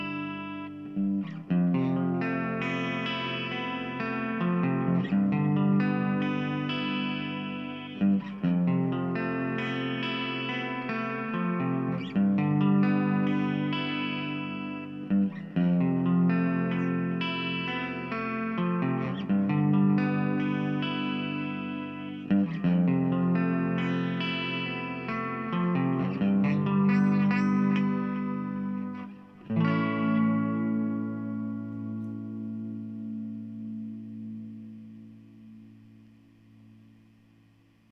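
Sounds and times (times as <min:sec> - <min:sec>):
guitar pad on C3: 0:00.0 - 0:37.9.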